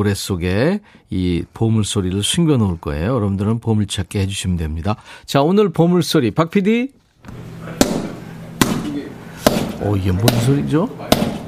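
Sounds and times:
speech: 0:00.0 - 0:07.5, 0:09.8 - 0:11.3
punching a sandbag: 0:07.8 - 0:11.4.

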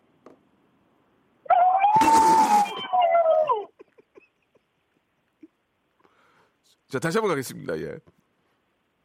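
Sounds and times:
elephant trumpeting: 0:01.5 - 0:03.0
speech: 0:06.9 - 0:08.2.

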